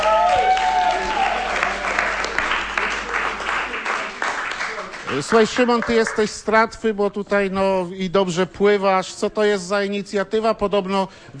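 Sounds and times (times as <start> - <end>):
audience applause: 0.0 - 6.4
speech: 5.2 - 11.3.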